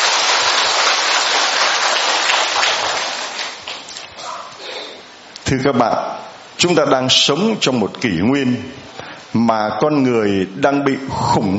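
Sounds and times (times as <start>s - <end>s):
large crowd clapping: 0.0s - 4.1s
speech: 5.5s - 11.5s.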